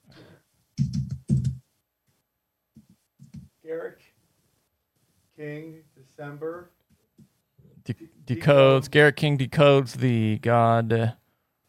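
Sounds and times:
typing on a computer keyboard: 0:00.8 - 0:01.6
speech: 0:03.7 - 0:04.2, 0:05.4 - 0:06.8, 0:07.9 - 0:11.2.

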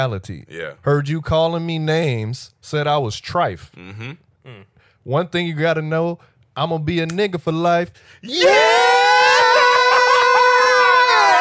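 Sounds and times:
speech: 0:00.0 - 0:08.8
man screaming: 0:08.3 - 0:11.3.

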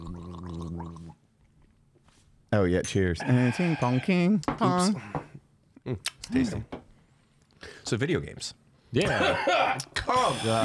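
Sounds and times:
gargling whiskey: 0:00.0 - 0:01.2
speech: 0:02.5 - 0:05.2, 0:05.8 - 0:06.8, 0:07.9 - 0:10.6.

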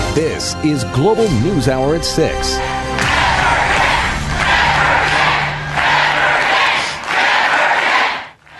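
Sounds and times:
speech: 0:00.2 - 0:02.8
crowd reacting: 0:03.0 - 0:08.5.

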